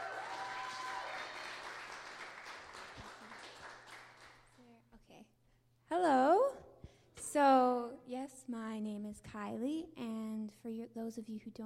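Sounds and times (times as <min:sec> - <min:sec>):
round of applause: 0:00.0 - 0:04.6
speech: 0:06.0 - 0:06.2, 0:08.5 - 0:11.6.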